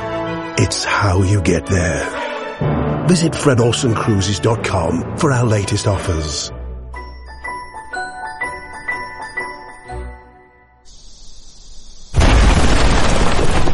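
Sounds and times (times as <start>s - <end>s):
speech: 0.6s - 6.6s
tinkling chime-like notes: 7.0s - 10.7s
bomb explosion: 12.1s - 13.7s.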